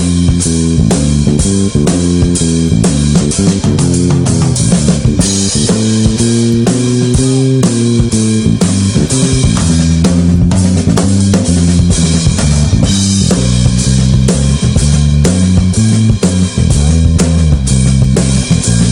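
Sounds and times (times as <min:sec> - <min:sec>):
grooving walking bass line: 0:00.0 - 0:18.8.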